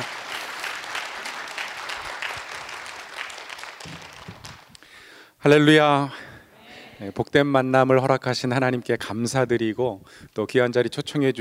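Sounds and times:
audience applause: 0:00.0 - 0:04.8
speech: 0:05.4 - 0:06.2, 0:07.0 - 0:11.3.

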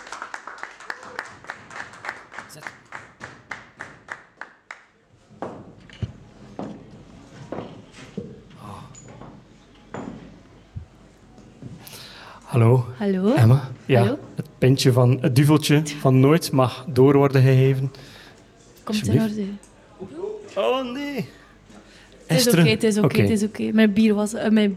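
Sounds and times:
live audience applause: 0:00.0 - 0:04.9
speech: 0:12.6 - 0:18.2, 0:18.9 - 0:21.4, 0:22.3 - 0:24.7.

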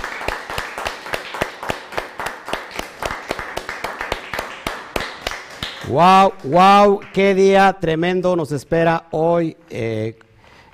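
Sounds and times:
small group clapping rhythmically: 0:00.0 - 0:07.9
speech: 0:05.9 - 0:10.2.

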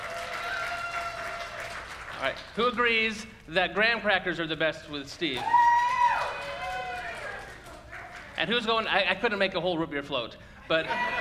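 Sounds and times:
crowd applauding: 0:00.0 - 0:03.3, 0:05.3 - 0:08.7
speech: 0:02.2 - 0:05.6, 0:08.4 - 0:11.2.

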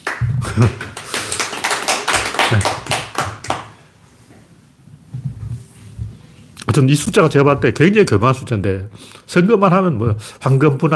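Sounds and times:
clapping: 0:00.0 - 0:03.7
speech: 0:00.6 - 0:00.9, 0:02.5 - 0:02.9, 0:06.8 - 0:10.9.

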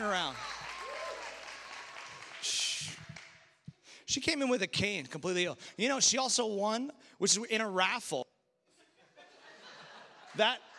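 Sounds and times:
crowd cheering: 0:00.0 - 0:03.3
audience applause: 0:00.0 - 0:03.4
speech: 0:04.1 - 0:08.2, 0:10.4 - 0:10.7
laughter: 0:08.8 - 0:10.7.

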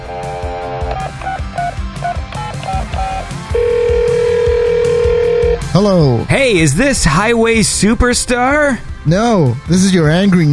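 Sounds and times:
low rhythmic musical backing: 0:00.0 - 0:07.2
loud sustained phone ringing tone: 0:00.1 - 0:05.6
telephone dialing beeps: 0:00.9 - 0:05.6
steady telephone dial tone: 0:02.4 - 0:05.6
speech: 0:05.8 - 0:10.5.

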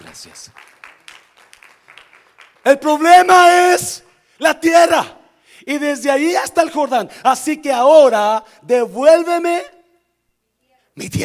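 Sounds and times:
audience applauding: 0:00.0 - 0:02.8
speech: 0:00.1 - 0:00.8, 0:02.6 - 0:09.7, 0:11.0 - 0:11.2.

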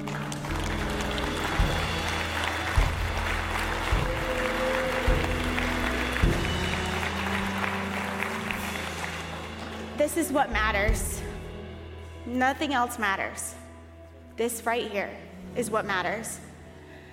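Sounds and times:
church audience round of applause: 0:00.0 - 0:10.0
low musical chords: 0:00.0 - 0:16.9
speech: 0:10.2 - 0:11.2, 0:12.3 - 0:13.6, 0:14.4 - 0:16.4.

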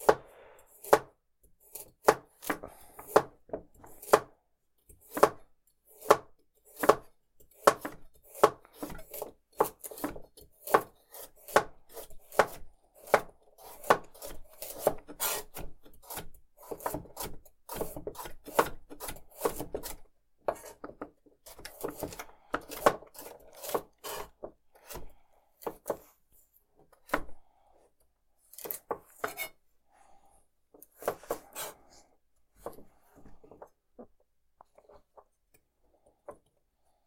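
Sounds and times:
knife chopping carrots into dice and sticks: 0:00.0 - 0:27.6, 0:28.4 - 0:29.6, 0:30.8 - 0:31.9, 0:32.6 - 0:33.6.

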